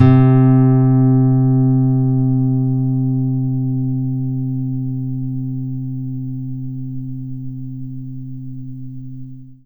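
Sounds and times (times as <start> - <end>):
nylon-string guitar: 0.0 - 9.6.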